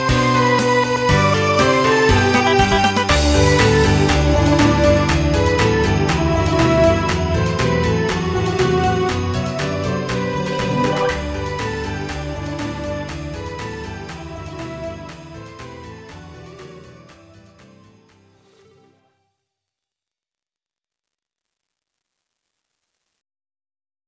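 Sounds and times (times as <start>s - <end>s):
MIDI song remix: 0.1s - 15.2s.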